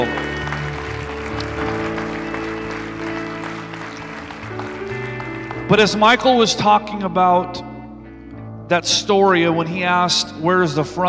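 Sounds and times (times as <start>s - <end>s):
audience applause: 0.0s - 6.4s
speech: 5.7s - 7.6s, 8.7s - 11.0s.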